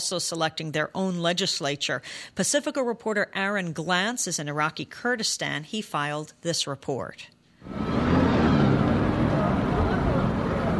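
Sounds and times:
speech: 0.0s - 8.2s
buses and pickup trucks arriving: 7.6s - 10.7s
indistinct murmur of voices: 7.7s - 10.7s.

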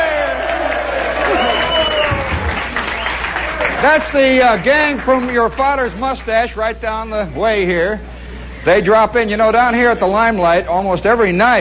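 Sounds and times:
audience cheering: 0.0s - 6.0s
speech: 3.8s - 11.5s.

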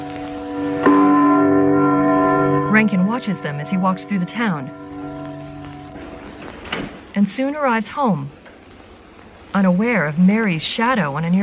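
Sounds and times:
church clock bell tolling: 0.0s - 6.7s
speech: 2.8s - 4.8s, 7.2s - 8.4s, 9.5s - 11.4s.

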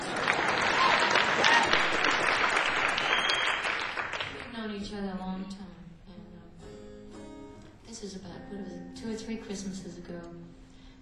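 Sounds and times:
audience applause: 0.0s - 4.5s
speech: 8.5s - 10.6s.

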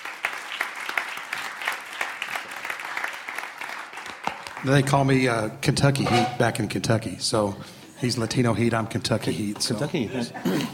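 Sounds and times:
audience applause: 0.0s - 4.8s
speech: 4.6s - 10.7s.

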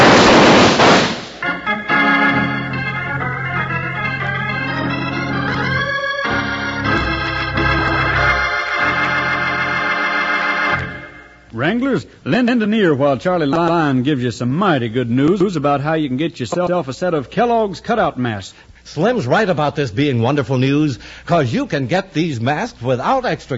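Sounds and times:
gunshot in an old radio western drama: 0.0s - 1.5s
dramatic music in an old radio western drama: 1.5s - 11.2s
speech: 11.7s - 23.5s.

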